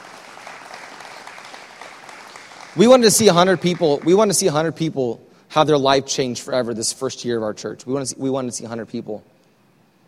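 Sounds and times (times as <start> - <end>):
audience clapping hands: 0.0 - 4.7
speech: 2.8 - 9.4.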